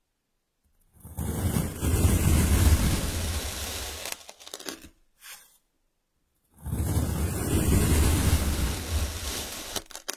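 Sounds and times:
powered sand rushing hiss: 1.5s - 4.3s, 6.8s - 10.1s.

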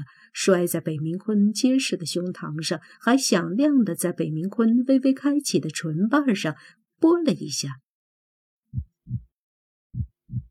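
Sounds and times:
speech: 0.0s - 7.8s
heartbeats: 8.7s - 10.4s.

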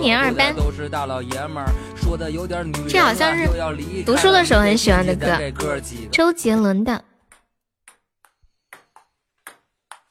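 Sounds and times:
speech: 0.0s - 7.1s
ping pong ball bouncing: 7.3s - 10.1s.

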